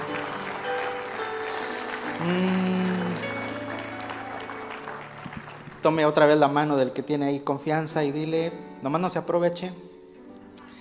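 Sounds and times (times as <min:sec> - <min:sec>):
audience applauding: 0:00.0 - 0:06.7
speech: 0:02.2 - 0:02.8, 0:05.8 - 0:09.9.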